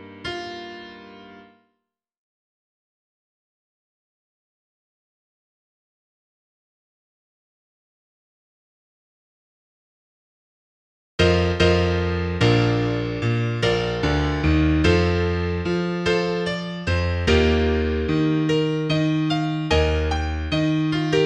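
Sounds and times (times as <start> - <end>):
piano piece: 0.0 - 1.6, 11.2 - 21.2.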